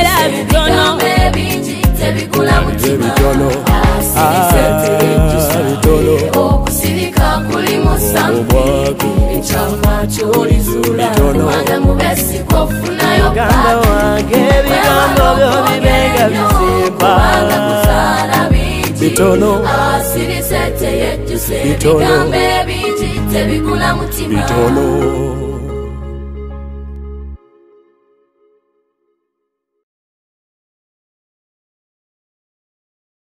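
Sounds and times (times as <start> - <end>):
choir singing: 0.0 - 25.7.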